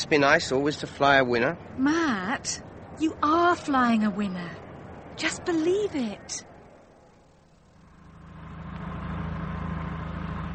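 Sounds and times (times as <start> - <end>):
speech: 0.0 - 4.6, 5.2 - 6.5
plane engine starting and turning over: 7.8 - 10.5.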